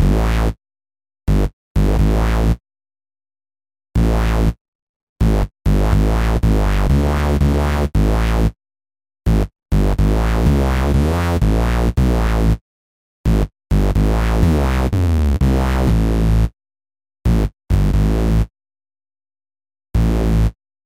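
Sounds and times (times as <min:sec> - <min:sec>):
dance portasynth bass on GR-55: 0:00.0 - 0:00.6, 0:01.3 - 0:02.6, 0:04.0 - 0:04.6, 0:05.2 - 0:08.6, 0:09.3 - 0:12.6, 0:13.3 - 0:16.5, 0:17.3 - 0:18.5, 0:20.0 - 0:20.6.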